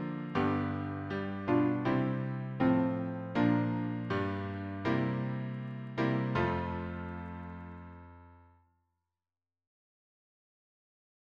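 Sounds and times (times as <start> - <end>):
piano harmony: 0.0 - 8.5.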